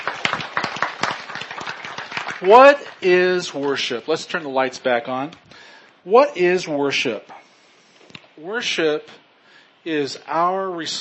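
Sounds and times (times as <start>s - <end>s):
audience clapping: 0.0s - 3.1s
speech: 2.4s - 7.4s, 8.4s - 9.2s, 9.8s - 10.9s.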